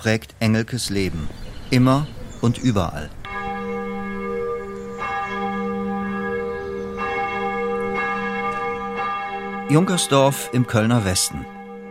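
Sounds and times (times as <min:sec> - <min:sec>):
speech: 0:00.0 - 0:03.2, 0:09.7 - 0:11.6
church bells of the Dietrich-Bonhoeffer Kirche ringing for Sunday service: 0:03.2 - 0:11.8.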